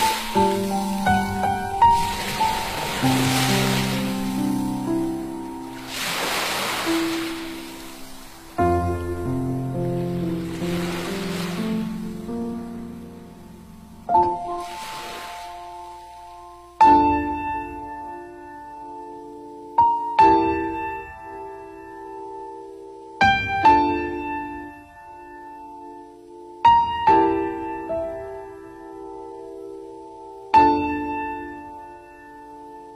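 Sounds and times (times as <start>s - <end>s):
ocean waves washing onto the shore: 0.0s - 16.8s
gentle melodic music with sustained tones and soft chords: 0.0s - 32.9s.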